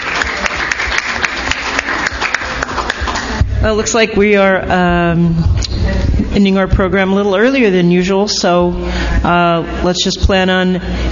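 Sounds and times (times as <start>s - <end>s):
audience applause after a talk: 0.0s - 3.4s
speech: 3.6s - 11.1s.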